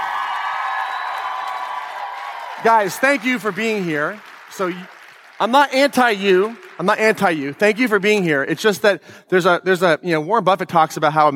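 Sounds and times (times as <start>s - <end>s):
audience applause: 0.0s - 8.3s
speech: 2.6s - 11.3s.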